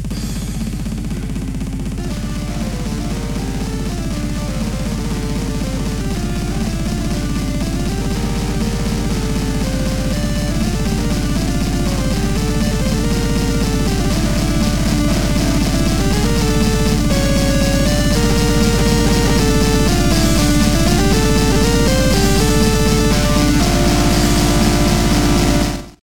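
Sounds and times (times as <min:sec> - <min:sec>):
ringtone: 0:00.1 - 0:26.0.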